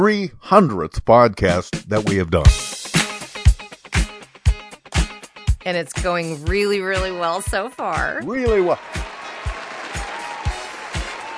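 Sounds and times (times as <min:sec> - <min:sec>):
speech: 0:00.0 - 0:02.8, 0:05.6 - 0:09.0
crowd applauding: 0:08.2 - 0:11.3.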